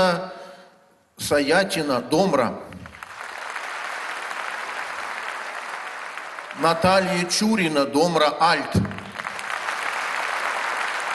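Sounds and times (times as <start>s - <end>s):
speech: 0.0s - 0.4s, 1.2s - 2.8s, 6.6s - 8.9s
audience applause: 2.7s - 7.3s, 8.5s - 11.1s.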